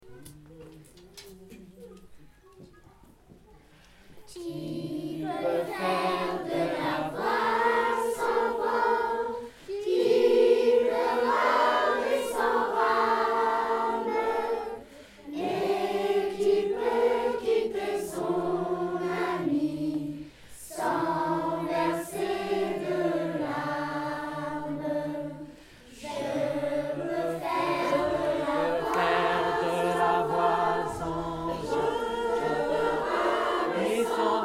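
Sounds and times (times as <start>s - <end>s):
chorale: 3.6s - 34.4s.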